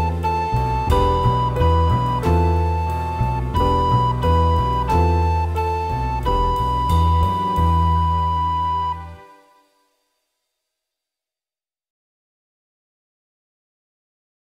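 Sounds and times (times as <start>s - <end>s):
backing track music: 0.0s - 9.8s
recorder playing: 0.0s - 9.8s.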